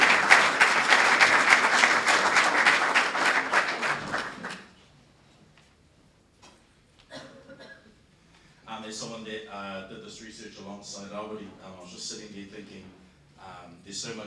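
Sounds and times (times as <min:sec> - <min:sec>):
round of applause: 0:00.0 - 0:04.8
speech: 0:08.9 - 0:14.2.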